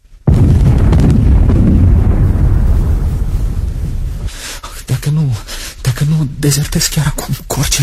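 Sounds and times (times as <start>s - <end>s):
artillery shells firing: 0.2s - 4.4s
speech: 6.4s - 7.8s.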